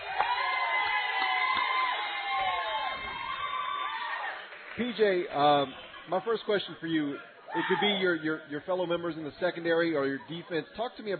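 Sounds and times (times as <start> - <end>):
crowd cheering and whooping: 0.0 - 4.6
speech: 4.8 - 11.1.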